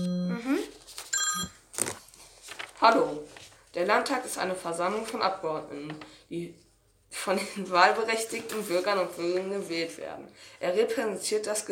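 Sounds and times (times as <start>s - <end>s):
telephone ringing on an outgoing call from a studio: 1.2s - 1.6s
speech: 2.8s - 11.7s.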